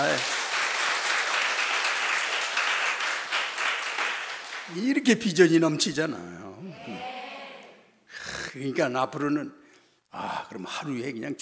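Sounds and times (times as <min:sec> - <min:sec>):
speech: 0:00.0 - 0:00.4, 0:04.7 - 0:07.1, 0:08.5 - 0:11.3
audience applause: 0:00.0 - 0:04.9.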